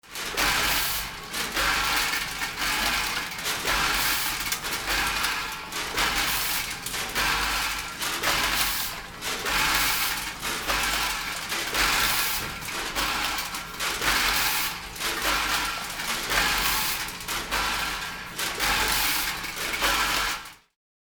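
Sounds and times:
candy filling machine: 0.0 - 20.7.

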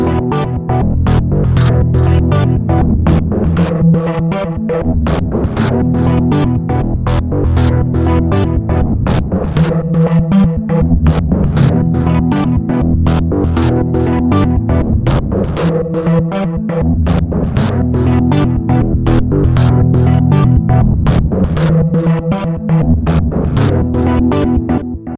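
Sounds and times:
dirty organ sequence: 0.0 - 24.9.

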